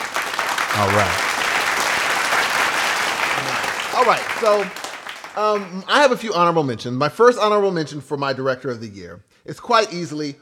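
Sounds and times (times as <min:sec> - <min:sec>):
applause: 0:00.0 - 0:06.2
speech: 0:00.8 - 0:01.2, 0:04.0 - 0:04.8, 0:05.4 - 0:10.4.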